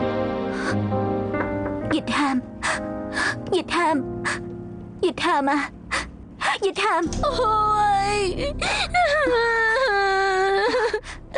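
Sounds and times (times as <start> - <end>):
speech: 0.6 - 1.1, 1.9 - 5.8, 6.6 - 10.2
woman crying: 5.5 - 11.3.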